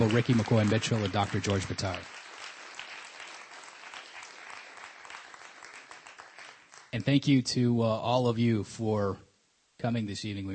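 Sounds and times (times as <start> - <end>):
speech: 0.0 - 2.2, 7.0 - 9.2, 9.8 - 10.5
audience applause: 0.0 - 7.2.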